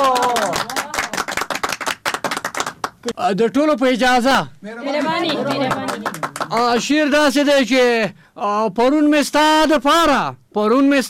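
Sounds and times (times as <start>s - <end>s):
audience applause for a poet: 0.0s - 3.0s, 5.0s - 7.0s
speech: 3.2s - 11.0s.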